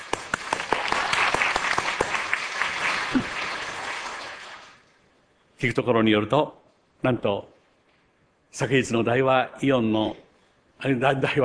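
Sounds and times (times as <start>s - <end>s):
audience applauding the children: 0.0s - 4.8s
speech: 5.6s - 7.6s, 8.5s - 10.2s, 10.8s - 11.4s.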